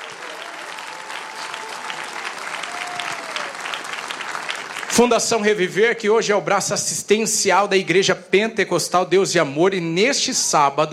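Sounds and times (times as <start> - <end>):
audience applauding: 0.0 - 5.5
speech: 4.9 - 10.9.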